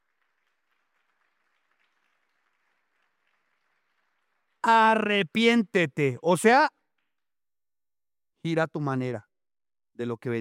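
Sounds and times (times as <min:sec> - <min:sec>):
audience applauding: 0:00.0 - 0:05.2
speech: 0:04.6 - 0:06.8, 0:08.4 - 0:09.3, 0:10.0 - 0:10.4.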